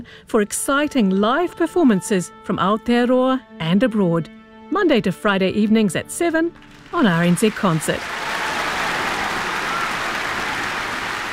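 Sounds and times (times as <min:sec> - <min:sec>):
speech: 0:00.0 - 0:08.3
round of applause: 0:06.6 - 0:11.3.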